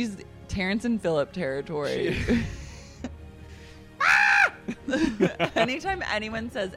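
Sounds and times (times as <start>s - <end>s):
speech: 0.0s - 2.6s, 4.9s - 6.7s
laughter: 1.9s - 3.1s, 4.7s - 6.1s
person imitating a scream: 4.0s - 4.6s.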